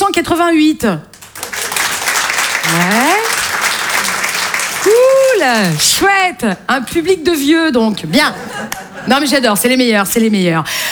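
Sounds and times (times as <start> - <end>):
speech: 0.2 - 1.1, 2.7 - 3.2, 4.8 - 10.9
audience applause at a stand-up comedy venue: 1.2 - 6.0
laughter: 8.0 - 9.4.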